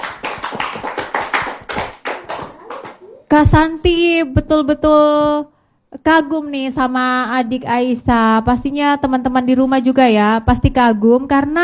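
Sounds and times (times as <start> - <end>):
handclaps: 0.0 - 3.6
speech: 3.3 - 11.6.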